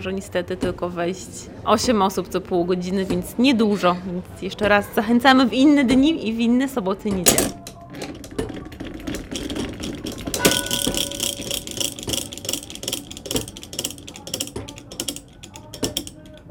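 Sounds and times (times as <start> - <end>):
speech: 0.0 - 7.6
ratcheting gears of a 260-year-old clock: 7.3 - 16.4.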